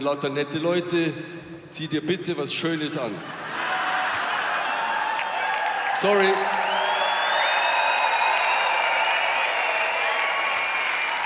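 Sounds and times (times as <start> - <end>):
speech: 0.0 - 3.5, 6.0 - 6.7
audience applause: 3.6 - 11.2.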